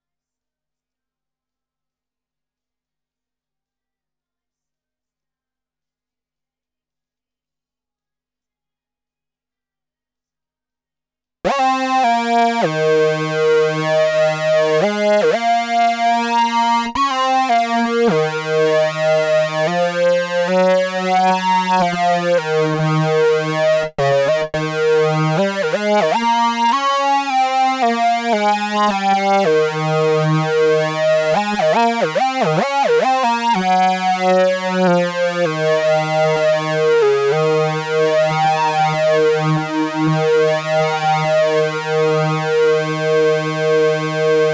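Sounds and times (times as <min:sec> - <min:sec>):
Moog synthesizer: 0:11.5 - 0:44.5.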